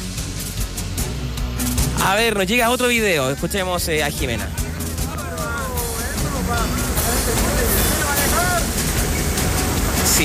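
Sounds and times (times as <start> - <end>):
floodwater running down at Cuesta Cardones: 0.2 - 10.2
speech: 2.0 - 4.6.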